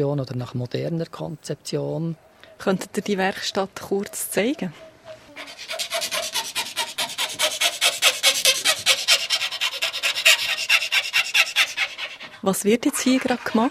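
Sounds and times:
speech: 0.0 - 5.6, 12.4 - 13.6
file rasping across a wooden template in a violin workshop: 5.4 - 13.6.

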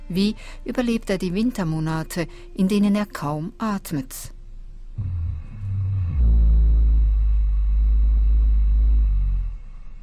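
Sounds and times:
speech: 0.1 - 4.4
hibernating black bear snoring: 5.0 - 10.0.

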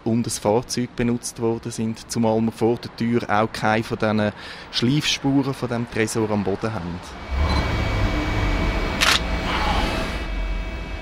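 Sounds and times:
speech: 0.0 - 7.6
low hum: 7.0 - 10.9
camera shutter click: 9.0 - 9.3.

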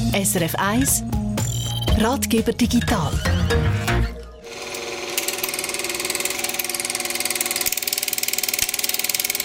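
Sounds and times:
speech: 0.2 - 1.2, 2.0 - 3.8
Super 8 film projector from the 1960s or 70s running: 4.4 - 9.4.

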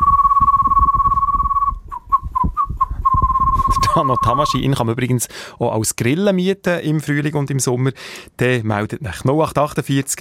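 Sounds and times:
low fluttering rumble: 0.0 - 4.3
person whistling an odd bird-like tune: 0.0 - 4.6
speech: 4.0 - 10.1.

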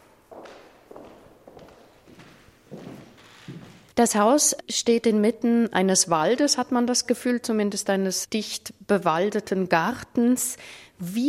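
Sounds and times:
quiet footsteps walking between rooms of a museum exhibition: 0.0 - 4.0
speech: 4.0 - 11.2.

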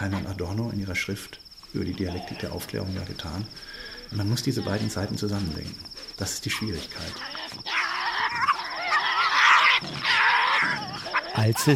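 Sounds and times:
speech: 0.0 - 7.7, 11.4 - 11.7
Tasmanian devil screeching among the ruins of Port Arthur: 2.0 - 2.6, 3.8 - 5.3, 6.1 - 11.7.

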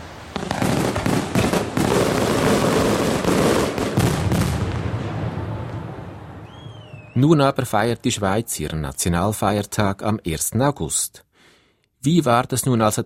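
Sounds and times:
fireworks exploding: 0.0 - 7.2
speech: 7.2 - 11.3, 12.0 - 13.0.

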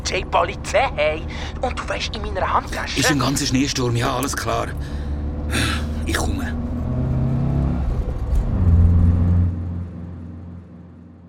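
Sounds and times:
speech: 0.1 - 6.6
car driving off fast: 4.3 - 11.2.

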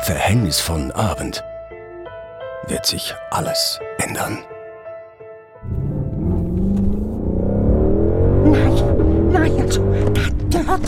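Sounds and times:
speech: 0.0 - 1.5, 2.6 - 4.6, 9.7 - 10.8
car engine starting and driving: 5.6 - 10.8.

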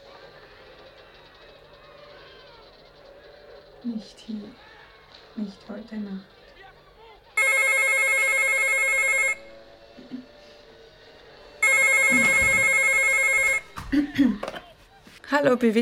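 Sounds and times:
speech: 3.8 - 4.7, 5.4 - 6.4, 15.3 - 15.8
telephone ringing: 7.4 - 9.6, 11.6 - 13.8.

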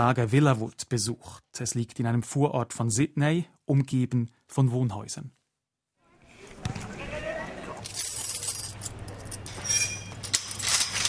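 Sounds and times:
speech: 0.0 - 5.4
keys jangling and clinking in a door lock: 7.8 - 11.0.

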